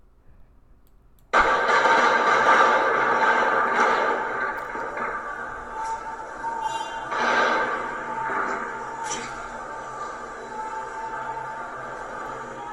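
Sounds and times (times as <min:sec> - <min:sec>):
heavy gunfire: 0:01.3 - 0:11.1.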